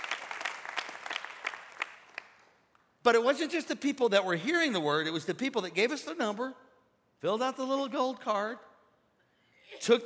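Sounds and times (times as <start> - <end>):
audience applauding: 0.0 - 2.5
speech: 3.1 - 6.6, 7.2 - 8.7, 9.7 - 10.0.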